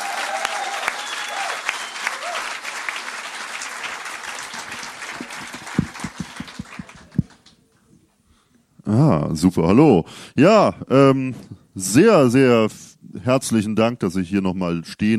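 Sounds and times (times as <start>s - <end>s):
audience applause for a performer: 0.0s - 7.5s
speech: 8.9s - 15.1s.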